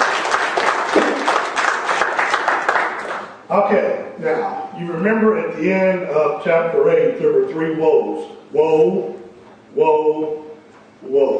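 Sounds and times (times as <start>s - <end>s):
audience applause: 0.0s - 3.4s
speech: 3.5s - 9.1s, 9.7s - 10.4s, 11.0s - 11.3s.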